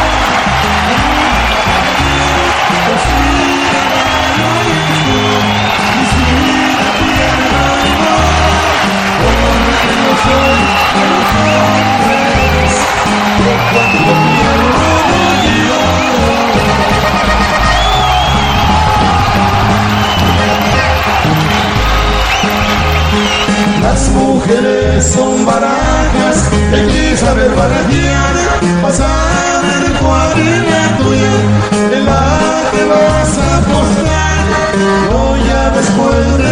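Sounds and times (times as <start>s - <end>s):
whoops and shouts: 0.0s - 23.8s
large concert audience cheering and applauding: 0.0s - 36.5s.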